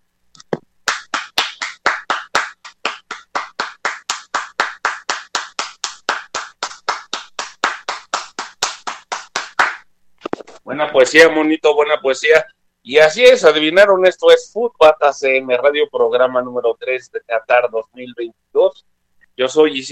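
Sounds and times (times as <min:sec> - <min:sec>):
applause: 0:00.9 - 0:09.8
speech: 0:10.7 - 0:19.8.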